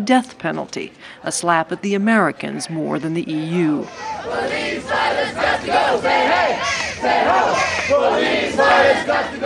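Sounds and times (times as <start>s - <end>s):
speech: 0.0s - 9.4s
large crowd of protesters chanting and shouting: 1.9s - 9.4s.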